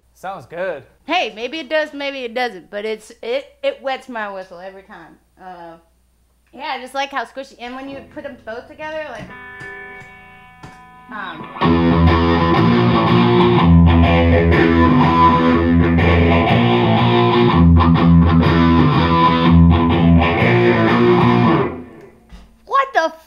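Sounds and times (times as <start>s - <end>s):
speech: 0.2s - 5.9s, 6.5s - 9.5s, 11.1s - 12.1s, 13.0s - 15.3s
electric guitar through phaser and distortion pedals: 8.0s - 22.3s.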